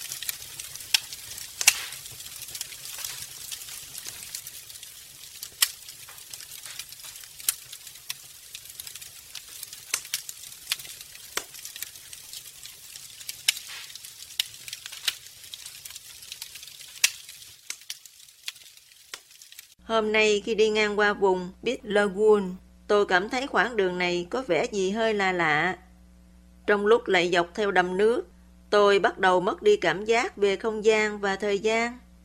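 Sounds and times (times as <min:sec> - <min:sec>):
campfire crackling: 0:00.0 - 0:19.8
speech: 0:19.9 - 0:25.8, 0:26.7 - 0:32.0.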